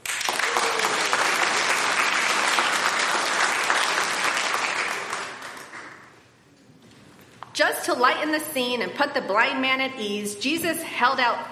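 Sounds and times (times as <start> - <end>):
audience applauding wildly: 0.0 - 6.2
speech: 7.8 - 11.5.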